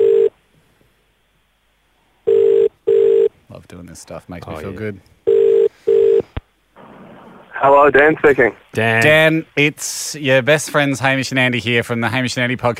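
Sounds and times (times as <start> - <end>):
telephone call ringing out: 0.0 - 0.3, 2.3 - 3.3, 5.2 - 6.2
speech: 3.8 - 5.2, 7.6 - 12.7.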